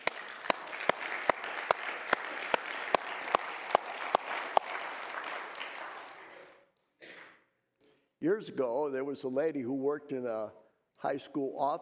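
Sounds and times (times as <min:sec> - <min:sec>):
audience clapping hands: 0:00.0 - 0:06.7
speech: 0:08.2 - 0:11.8.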